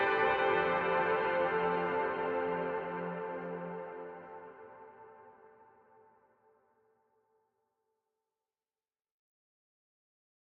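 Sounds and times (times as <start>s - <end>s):
ambient music: 0.0s - 6.2s.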